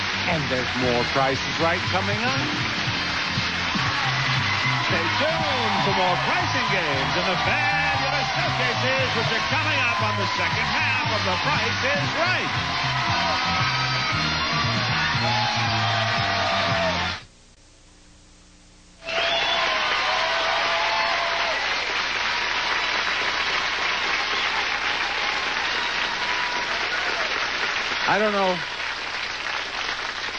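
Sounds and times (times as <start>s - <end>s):
studio audience applause: 0.0s - 17.2s, 19.0s - 30.3s
speech: 0.3s - 2.9s, 4.8s - 16.0s, 28.1s - 28.8s
whoops and cheers: 3.7s - 17.2s, 19.0s - 27.5s.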